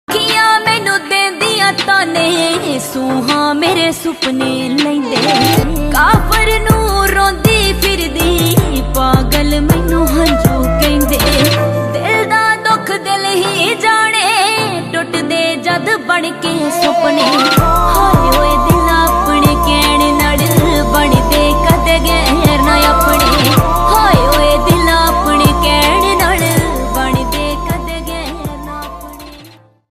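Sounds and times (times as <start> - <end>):
romantic song ringtone: 0.2 - 29.6.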